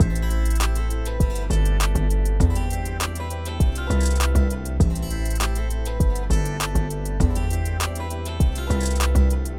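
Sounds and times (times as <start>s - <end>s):
hip hop music: 0.0s - 9.5s.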